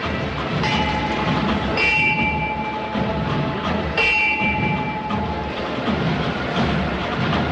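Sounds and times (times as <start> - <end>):
crowd and street noise: 0.0 - 7.5
signal strikes for lowering a procession float: 0.6 - 5.8.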